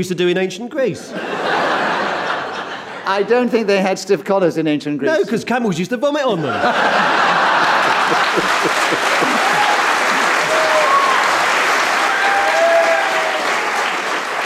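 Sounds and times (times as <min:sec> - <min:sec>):
speech: 0:00.0 - 0:01.9, 0:03.1 - 0:07.2, 0:08.1 - 0:09.1
laughter: 0:01.1 - 0:03.2, 0:06.4 - 0:11.4
audience applause: 0:06.6 - 0:14.4.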